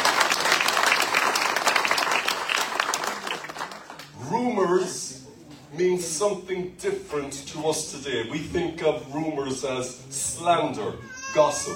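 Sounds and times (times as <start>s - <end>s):
crowd applauding: 0.0s - 4.1s
speech: 6.2s - 11.7s.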